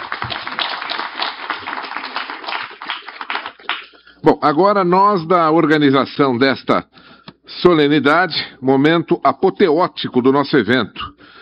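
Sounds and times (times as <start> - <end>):
audience applause: 0.0 - 4.0
speech: 4.2 - 11.1.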